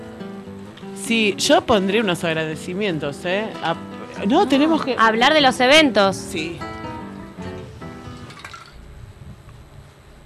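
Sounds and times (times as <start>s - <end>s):
speech: 1.1s - 6.7s
lemon water being poured into a glass: 8.2s - 8.8s
splashy drips: 8.3s - 8.8s.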